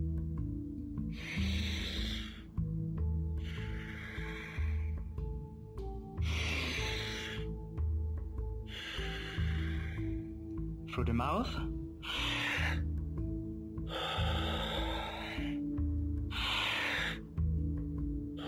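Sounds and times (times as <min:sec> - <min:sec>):
soft low sustained musical drone: 0:00.0 - 0:18.4
slow steady breathing through the nose: 0:01.0 - 0:02.7, 0:03.4 - 0:07.7, 0:08.6 - 0:10.8, 0:11.9 - 0:17.5
speech: 0:11.0 - 0:11.7.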